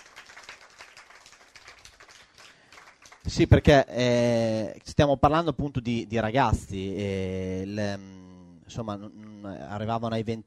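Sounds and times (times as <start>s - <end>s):
applause: 0.0s - 3.8s
speech: 3.3s - 10.4s.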